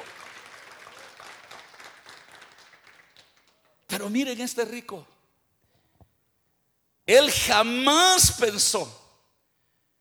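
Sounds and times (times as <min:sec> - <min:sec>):
audience applause: 0:00.0 - 0:03.7
speech: 0:04.0 - 0:05.1, 0:07.1 - 0:09.0.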